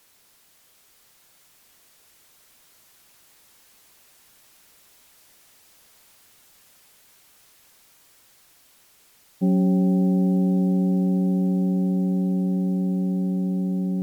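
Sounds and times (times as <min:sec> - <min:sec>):
temple bell ringing: 0:09.4 - 0:14.0.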